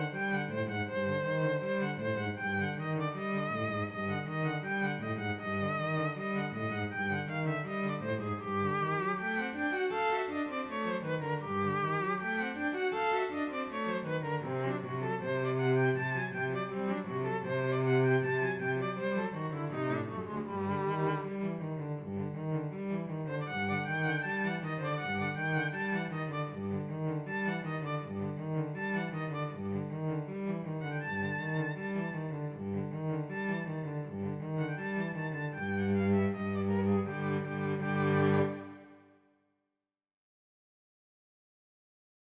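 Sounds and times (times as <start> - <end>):
violin and cello duo: 0.0 - 39.0.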